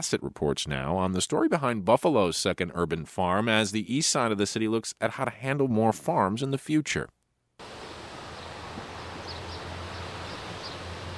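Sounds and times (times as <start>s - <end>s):
speech: 0.0s - 7.2s
insects: 7.6s - 11.1s
birds singing: 7.7s - 11.1s.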